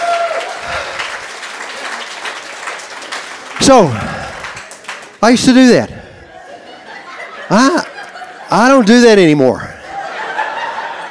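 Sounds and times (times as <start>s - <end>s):
children clapping hands: 0.0s - 5.2s
speech: 3.7s - 4.2s, 5.2s - 6.0s, 7.5s - 7.8s, 8.5s - 9.7s
laughter: 5.5s - 11.0s.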